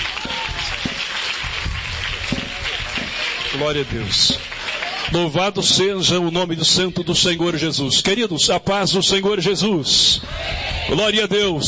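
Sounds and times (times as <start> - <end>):
audience applause: 0.0 - 5.8
speech: 3.6 - 4.5, 5.1 - 11.6.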